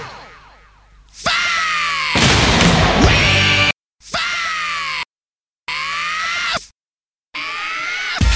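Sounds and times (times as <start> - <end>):
person screaming: 1.2 - 2.2, 3.0 - 5.1, 5.7 - 6.7, 7.3 - 8.2.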